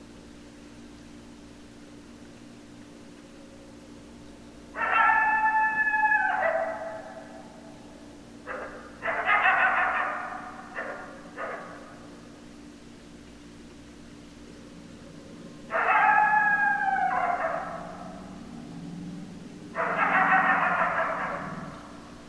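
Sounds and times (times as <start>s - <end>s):
coyote chorus howling and yipping: 4.7s - 12.2s, 14.9s - 22.2s.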